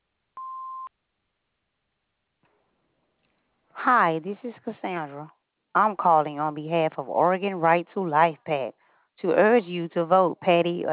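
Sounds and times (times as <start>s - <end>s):
answering machine electronic beep: 0.4s - 0.9s
speech: 3.8s - 10.9s.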